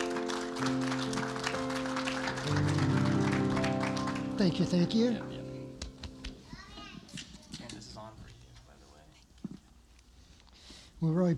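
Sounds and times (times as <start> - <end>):
audience applause welcoming guests coming forward: 0.0 - 5.9
sustained chords of keyboard music: 0.0 - 6.5
speech: 0.6 - 1.0, 4.4 - 5.3, 11.0 - 11.3.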